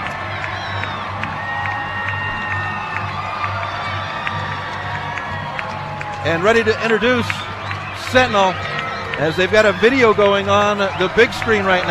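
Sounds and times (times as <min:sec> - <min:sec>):
stadium crowd cheering: 0:00.0 - 0:11.8
speech: 0:06.2 - 0:07.5, 0:08.1 - 0:11.8.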